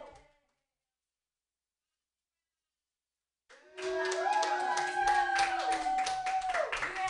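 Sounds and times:
audience clapping hands: 0:03.5 - 0:07.0.

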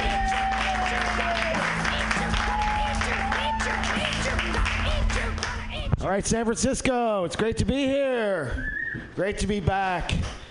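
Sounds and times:
audience applause: 0:00.0 - 0:05.6
speech: 0:06.1 - 0:10.4.

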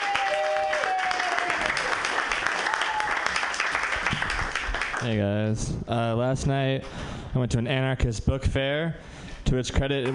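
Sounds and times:
comedy show audience applause welcoming a comedian: 0:00.0 - 0:05.1
speech: 0:05.0 - 0:10.1.

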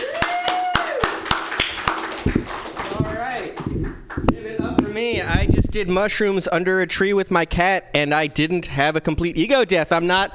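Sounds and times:
audience clapping for a comedian: 0:00.0 - 0:05.4
speech: 0:05.0 - 0:10.3.

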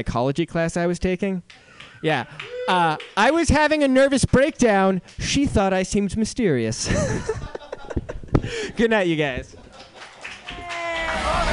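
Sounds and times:
speech: 0:00.0 - 0:07.6, 0:08.5 - 0:09.6
audience applauding: 0:01.5 - 0:04.6, 0:09.7 - 0:11.5
voices cheering: 0:01.9 - 0:04.6, 0:10.2 - 0:11.5
laughter: 0:06.8 - 0:11.5.

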